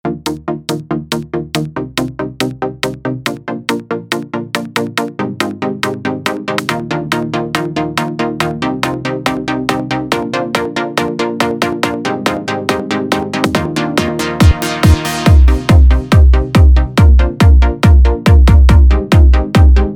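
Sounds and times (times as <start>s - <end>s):
techno music: 0.0s - 19.9s.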